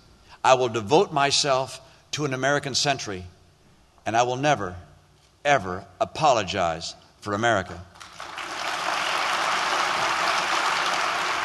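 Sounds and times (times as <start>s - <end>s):
speech: 0.4s - 3.4s, 4.0s - 7.9s
crowd clapping politely: 8.0s - 11.4s.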